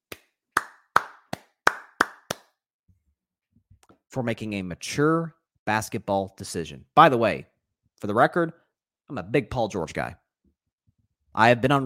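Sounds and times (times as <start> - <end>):
hand claps in honor of the New York Knicks: 0.0 - 2.6
speech: 4.2 - 10.2, 11.4 - 11.8.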